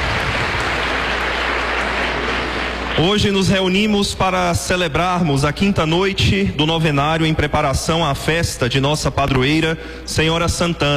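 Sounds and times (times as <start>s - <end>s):
congregation applause during a parish novena for the feast of Senhora Santana: 0.0s - 4.0s
speech: 3.0s - 10.9s.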